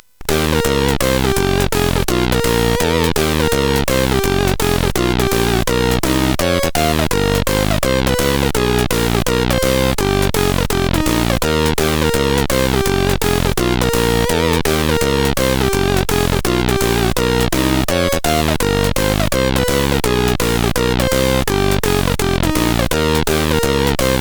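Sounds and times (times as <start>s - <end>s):
jazz music on CSG8580 chip: 0.2s - 24.1s.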